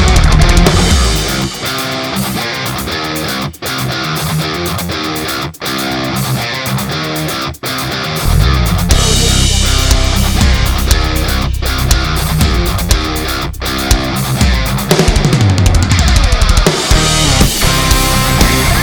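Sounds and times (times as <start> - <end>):
heavy metal music for extreme sport: 0.0 - 18.8.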